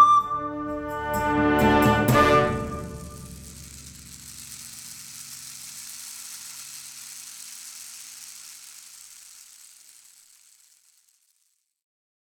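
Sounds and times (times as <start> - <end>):
recorder playing: 0.0 - 3.1.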